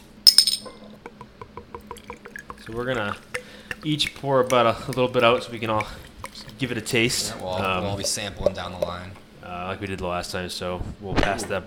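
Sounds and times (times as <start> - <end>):
glass clinking: 0.2 - 0.9
speech: 2.7 - 6.0, 6.6 - 11.6.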